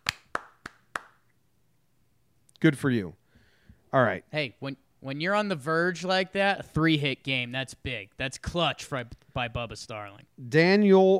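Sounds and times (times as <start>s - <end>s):
hand claps: 0.0s - 1.4s
speech: 2.6s - 3.2s, 3.9s - 11.1s.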